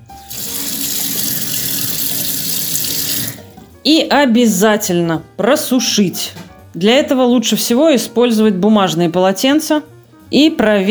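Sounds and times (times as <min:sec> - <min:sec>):
running tap water rinsing chicken: 0:00.0 - 0:03.7
speech: 0:03.8 - 0:10.8.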